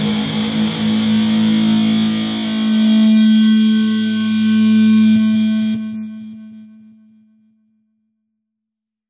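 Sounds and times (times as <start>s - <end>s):
electric guitar with effects: 0.0s - 7.2s.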